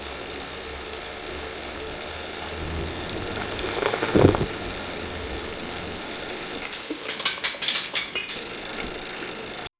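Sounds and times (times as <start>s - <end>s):
motorbike revving faster: 0.0s - 9.7s.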